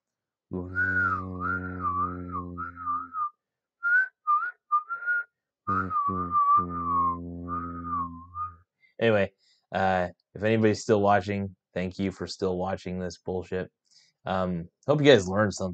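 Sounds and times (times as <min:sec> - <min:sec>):
speech: 0:00.5 - 0:01.4, 0:09.0 - 0:15.7
person whistling a tune: 0:00.6 - 0:08.6.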